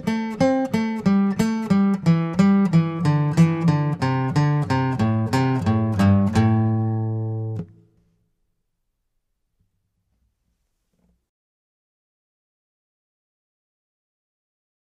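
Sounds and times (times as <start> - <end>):
blues scale in A with chops: 0.0 - 7.8.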